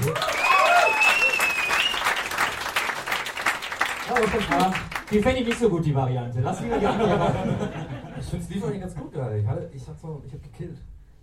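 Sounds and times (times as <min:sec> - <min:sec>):
audience applause: 0:00.0 - 0:05.3
speech: 0:04.3 - 0:10.9
laughter: 0:06.6 - 0:08.4.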